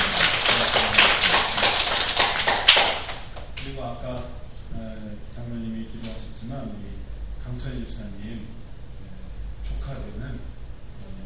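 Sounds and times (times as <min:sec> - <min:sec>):
audience applause: 0:00.0 - 0:03.4
speech: 0:06.5 - 0:08.6, 0:09.8 - 0:11.2.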